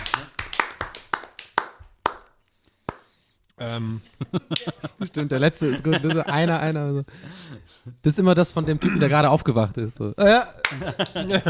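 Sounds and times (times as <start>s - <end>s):
hand claps: 0.0s - 3.2s, 4.4s - 4.9s, 10.6s - 11.4s
speech: 3.6s - 11.4s
laughter: 3.7s - 8.0s, 10.2s - 11.4s.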